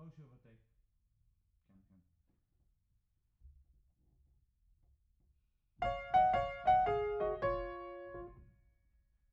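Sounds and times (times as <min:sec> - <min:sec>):
piano: 0:05.8 - 0:08.7.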